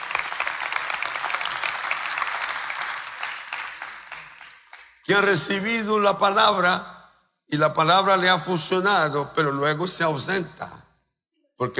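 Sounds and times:
audience clapping: 0.0 - 5.4
speech: 5.1 - 6.9, 7.5 - 10.6, 11.6 - 11.7.

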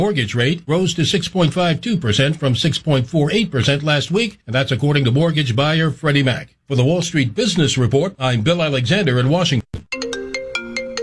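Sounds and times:
speech: 0.0 - 9.6
cell phone ringtone with three bright electronic pulses: 9.9 - 11.0.

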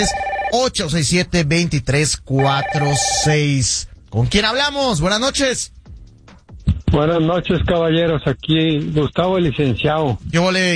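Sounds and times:
telephone ringing as a caller dials into a sports call-in show: 0.0 - 0.6, 2.4 - 3.4
speech: 0.0 - 5.8, 6.9 - 10.7.

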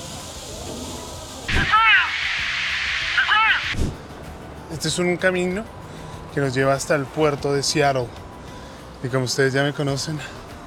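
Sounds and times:
public fountain water jets rushing: 0.0 - 3.9
speech: 4.8 - 5.8, 6.4 - 8.2, 9.0 - 10.4.

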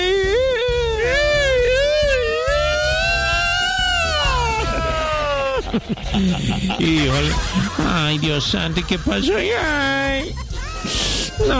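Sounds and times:
voice imitating a wailing alarm siren: 0.0 - 5.4
laughter: 4.0 - 11.5
speech: 5.7 - 11.5.

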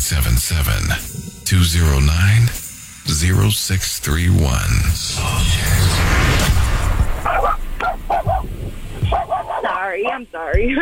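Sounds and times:
speech: 0.1 - 6.6, 9.9 - 10.7
dog barking over a phone line: 7.2 - 8.5, 9.1 - 9.8.

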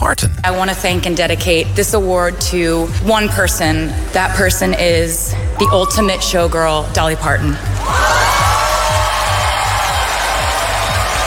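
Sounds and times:
speech: 0.0 - 8.2
steady low thumping pulse: 0.3 - 7.9
large crowd applauding and cheering: 7.7 - 11.2.

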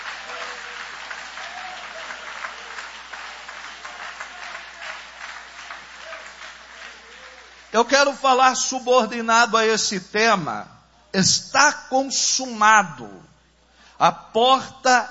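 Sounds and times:
audience applauding together: 0.0 - 7.8
speech: 7.7 - 13.3, 14.0 - 15.0.

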